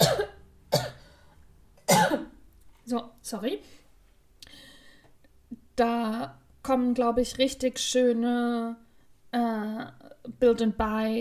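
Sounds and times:
person coughing with a frog in the throat: 0:00.0 - 0:01.0, 0:01.9 - 0:02.4
throat clearing: 0:00.0 - 0:01.0
speech: 0:02.9 - 0:03.8, 0:05.8 - 0:11.2.

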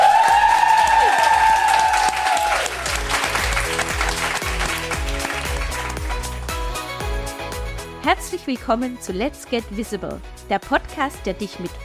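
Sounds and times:
crowd whooping: 0:00.0 - 0:03.0
live crowd applause and cheering: 0:00.0 - 0:06.9
speech: 0:08.1 - 0:11.8.

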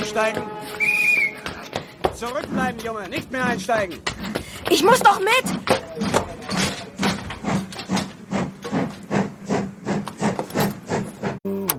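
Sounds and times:
train whistle: 0:00.0 - 0:02.0
train rattling and jolting with hissing chuffs: 0:00.0 - 0:11.4
speech: 0:00.2 - 0:00.8, 0:02.2 - 0:06.2.

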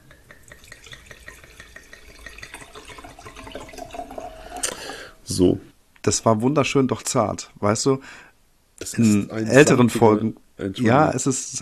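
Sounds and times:
wine being poured into a glass: 0:00.0 - 0:05.3
speech: 0:05.3 - 0:11.5.

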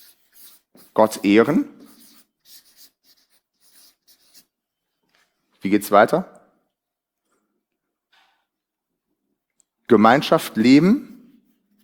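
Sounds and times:
writing on a board: 0:00.0 - 0:04.6
speech: 0:01.0 - 0:01.8, 0:05.6 - 0:06.4, 0:09.9 - 0:11.1.

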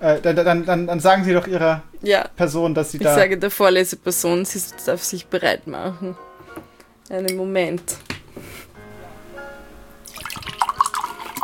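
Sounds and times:
speech: 0:00.0 - 0:08.1
pouring water, watering: 0:10.0 - 0:11.4.

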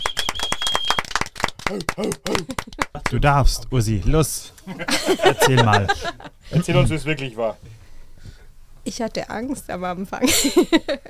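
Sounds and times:
audience clapping for a one-year anniversary: 0:00.0 - 0:03.6
laughter: 0:01.7 - 0:03.3, 0:04.6 - 0:06.9, 0:10.2 - 0:11.0
speech: 0:01.7 - 0:11.0.

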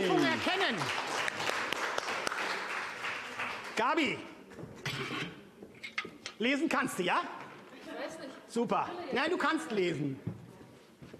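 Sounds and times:
audience applause: 0:00.0 - 0:04.1
speech: 0:03.8 - 0:05.4, 0:06.4 - 0:07.4, 0:08.2 - 0:10.3.

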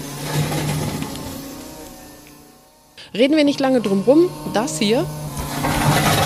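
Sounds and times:
electric excavator working: 0:00.0 - 0:06.2
speech: 0:03.0 - 0:05.4.

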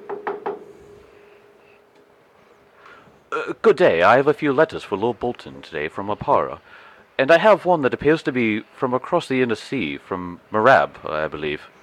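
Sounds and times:
knocking on a wooden door: 0:00.0 - 0:00.7
speech: 0:03.4 - 0:11.8.

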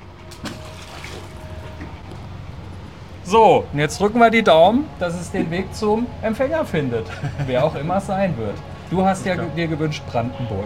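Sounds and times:
moving water with faint trickling: 0:00.0 - 0:10.6
bottle thrown into water, splash: 0:00.3 - 0:01.4
speech: 0:03.3 - 0:10.6
laughter: 0:06.8 - 0:09.6.

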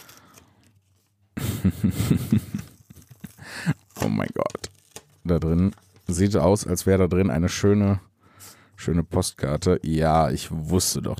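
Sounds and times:
soft rustles: 0:00.0 - 0:01.2, 0:02.4 - 0:06.6
sticky tape peeled off an envelope: 0:02.5 - 0:06.3
speech: 0:05.3 - 0:08.1, 0:08.8 - 0:11.1.

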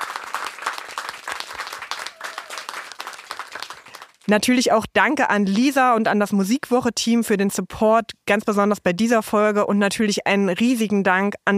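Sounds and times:
loud applause from studio audience: 0:00.0 - 0:04.3
speech: 0:04.3 - 0:11.5.

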